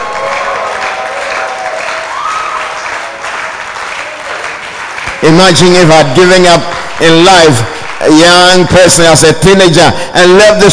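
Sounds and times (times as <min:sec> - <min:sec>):
audience shouting: 0:00.0 - 0:03.0
audience clapping: 0:00.0 - 0:09.8
speech: 0:05.2 - 0:10.7.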